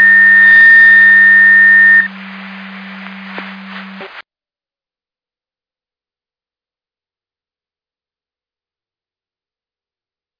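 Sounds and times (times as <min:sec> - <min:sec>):
siren: 0:00.0 - 0:04.2.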